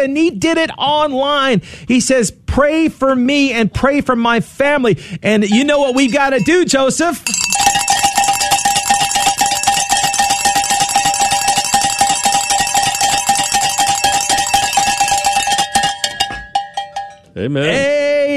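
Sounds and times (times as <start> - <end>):
speech: 0.0 - 8.0, 17.4 - 17.9
celebration bell ringing: 5.5 - 17.4.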